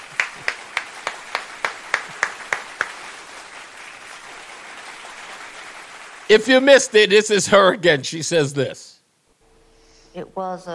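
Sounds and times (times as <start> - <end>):
slow steady clapping: 0.0 - 7.4
speech: 6.3 - 8.9, 10.2 - 10.7.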